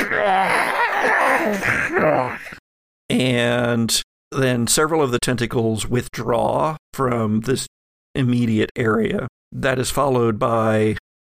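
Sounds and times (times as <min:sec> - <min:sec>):
voice imitating inhuman scream-like roar: 0:00.0 - 0:02.6
speech: 0:01.4 - 0:02.6, 0:03.2 - 0:11.0.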